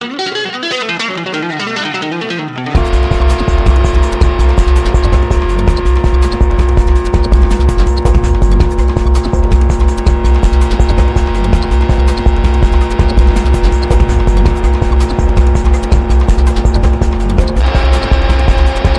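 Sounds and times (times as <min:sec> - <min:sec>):
electronic tech jam: 0:00.0 - 0:18.9.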